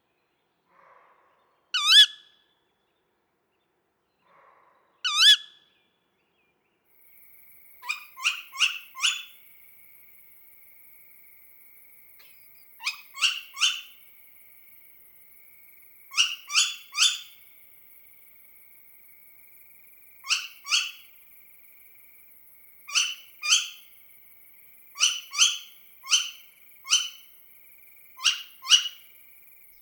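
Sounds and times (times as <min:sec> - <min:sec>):
tawny owl: 0:01.8 - 0:02.3, 0:05.0 - 0:05.5, 0:07.8 - 0:09.4, 0:12.2 - 0:14.0, 0:16.1 - 0:17.4, 0:20.2 - 0:21.1, 0:22.9 - 0:23.9, 0:24.9 - 0:27.3, 0:28.2 - 0:29.1.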